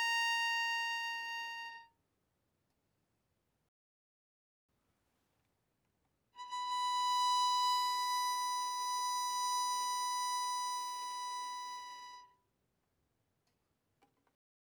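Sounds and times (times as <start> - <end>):
bowed violin on the E string: 0.0 - 1.8, 6.4 - 12.2.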